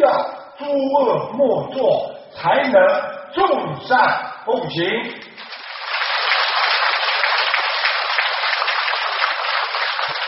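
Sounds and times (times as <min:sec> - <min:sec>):
speech: 0:00.6 - 0:05.4
audience applause: 0:05.4 - 0:10.2.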